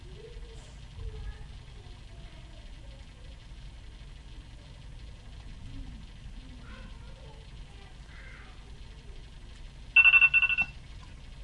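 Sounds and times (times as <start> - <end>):
phone morning alarm ringing: 10.0 - 10.8.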